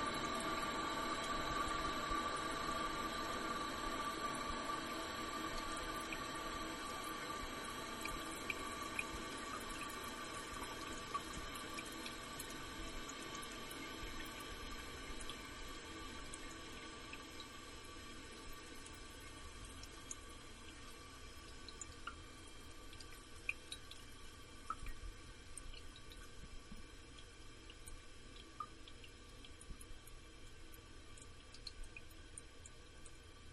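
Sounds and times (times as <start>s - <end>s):
toilet tank filling: 0.0s - 26.8s.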